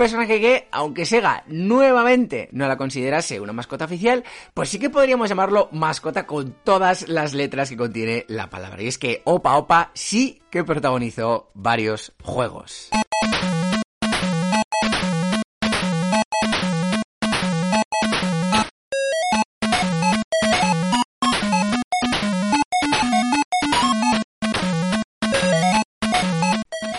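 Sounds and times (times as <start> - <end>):
speech: 0.0 - 13.6
upbeat Master System video game music: 12.9 - 26.9.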